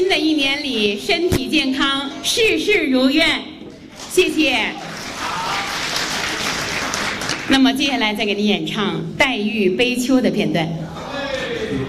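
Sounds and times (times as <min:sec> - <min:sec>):
speech: 0:00.1 - 0:05.5, 0:07.5 - 0:10.9
audience applause at a Beijing opera performance: 0:04.8 - 0:07.5.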